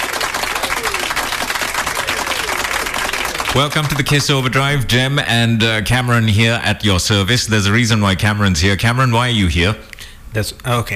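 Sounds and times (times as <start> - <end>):
faint voices and cheers: 0.0 - 3.7
crowd applauding: 0.0 - 4.6
speech: 3.6 - 10.9.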